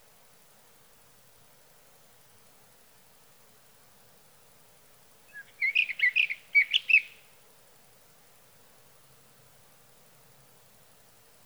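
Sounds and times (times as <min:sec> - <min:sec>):
Sage Thrasher song of short rapid warbled phrases: 0:05.3 - 0:07.2.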